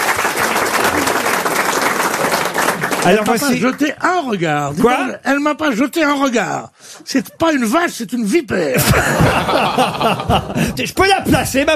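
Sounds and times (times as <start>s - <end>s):
audience applause at a live quiz show: 0.0s - 4.0s
speech: 3.0s - 11.7s
laughter: 8.5s - 10.9s.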